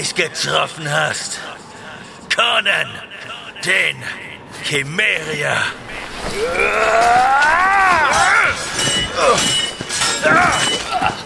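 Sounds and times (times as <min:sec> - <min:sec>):
speech: 0:00.0 - 0:01.7, 0:02.4 - 0:08.6, 0:10.2 - 0:11.2
steel blades clashing in a sword fight over icy land: 0:06.4 - 0:11.2.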